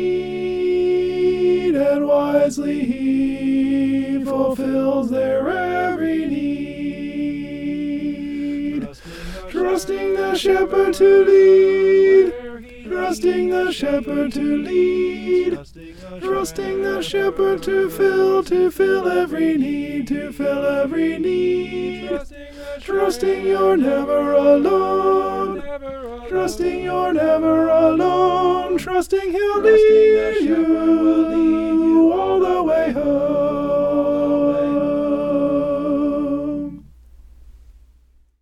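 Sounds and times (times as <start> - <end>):
alto part singing: 0.0 - 37.0.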